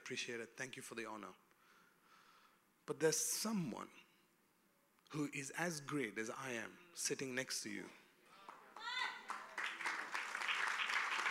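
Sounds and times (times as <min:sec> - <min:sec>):
speech: 0:00.1 - 0:01.4, 0:02.9 - 0:04.1, 0:05.1 - 0:08.0
audience applause: 0:08.5 - 0:11.2
people cheering: 0:08.6 - 0:11.2.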